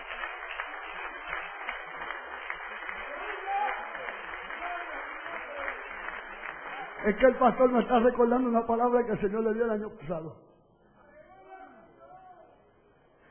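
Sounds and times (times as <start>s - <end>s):
audience applause: 0.0s - 8.6s
speech: 7.0s - 10.4s.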